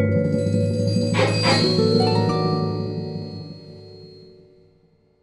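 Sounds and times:
sitar: 0.2s - 4.4s.

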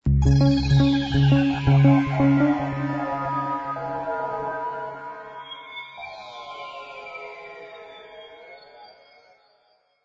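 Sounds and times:
theme music: 0.1s - 5.2s.

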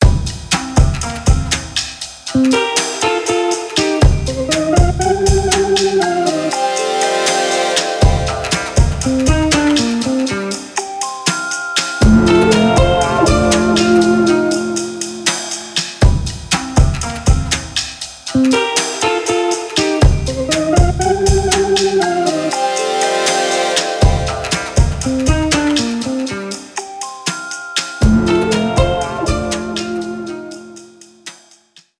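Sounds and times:
chill out music: 0.0s - 31.3s.

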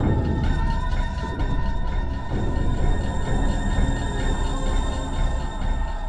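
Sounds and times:
music: 0.0s - 6.0s.

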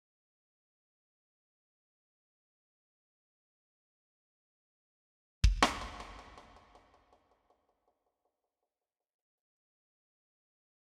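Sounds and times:
intro drums: 5.4s - 6.8s.

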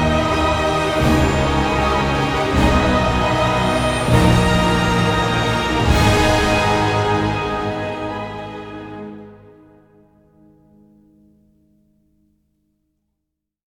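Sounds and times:
epic battle music: 0.0s - 9.4s.

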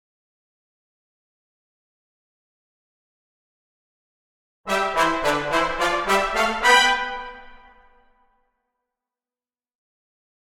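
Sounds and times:
brass stems: 4.7s - 8.3s.

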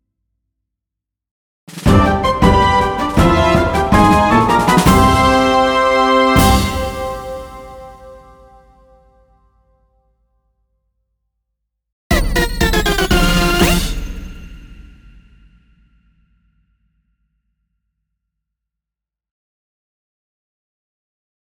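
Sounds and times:
jingle medley: 1.8s - 8.6s, 12.1s - 15.2s.

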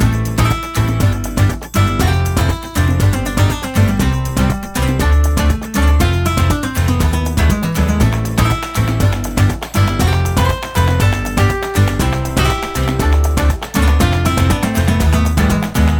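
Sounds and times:
ramen background music: 0.0s - 15.9s.

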